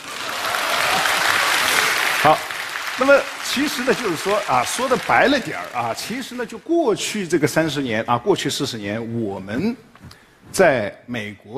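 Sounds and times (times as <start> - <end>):
audience applauding: 0.0 - 7.3
speech: 2.2 - 11.5.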